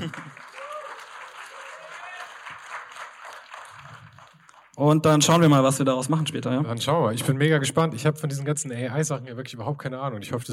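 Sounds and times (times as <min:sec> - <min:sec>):
speech: 0:00.0 - 0:00.3, 0:04.8 - 0:10.5
audience applause: 0:00.0 - 0:04.8.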